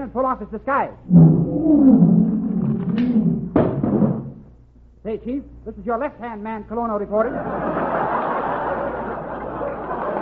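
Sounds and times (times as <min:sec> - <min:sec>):
speech: 0:00.0 - 0:02.3, 0:05.0 - 0:08.0
lion roaring and growling: 0:01.1 - 0:03.6
laughter: 0:07.2 - 0:10.1.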